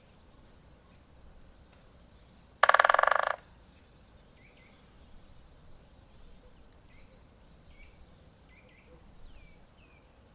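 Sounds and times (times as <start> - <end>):
Great spotted woodpecker drumming: 2.6 - 3.5.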